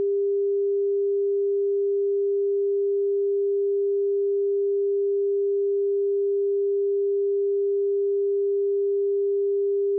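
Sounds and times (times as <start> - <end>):
sine tone: 0.0 - 9.9.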